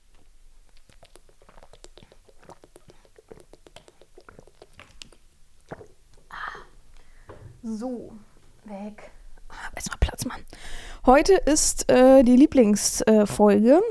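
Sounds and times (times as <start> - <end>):
drinking from a water bottle: 0.8 - 6.7
speech: 7.6 - 9.2, 9.8 - 13.8.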